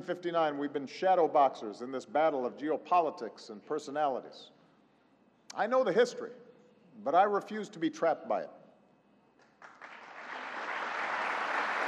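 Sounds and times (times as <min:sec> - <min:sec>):
speech: 0:00.0 - 0:04.6, 0:05.5 - 0:06.4, 0:07.0 - 0:08.6
brief audience applause: 0:09.6 - 0:11.8.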